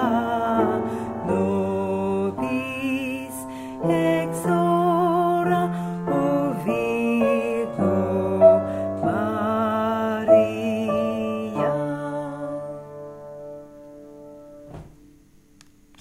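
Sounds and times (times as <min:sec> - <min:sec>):
bass voice singing a Marian antiphon: 0:00.0 - 0:12.8.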